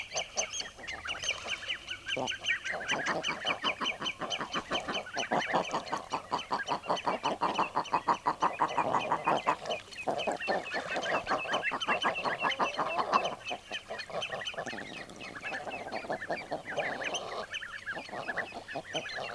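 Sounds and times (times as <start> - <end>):
common eiders clucking: 0.0 - 19.3.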